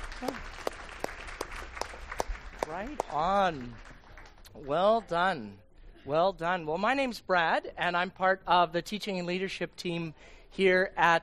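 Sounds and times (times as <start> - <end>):
audience applause for participating kids: 0.0 - 4.8
speech: 0.2 - 0.5, 2.7 - 3.9, 4.6 - 11.2.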